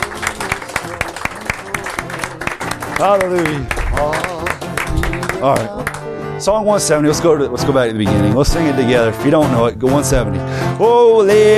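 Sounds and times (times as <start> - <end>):
audience clapping in praise and worship: 0.0 - 6.4
speech: 3.0 - 11.5.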